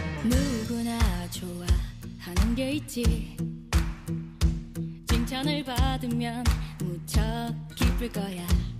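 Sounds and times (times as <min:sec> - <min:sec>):
cool teenage boy singing: 0:00.2 - 0:03.3, 0:05.1 - 0:08.7.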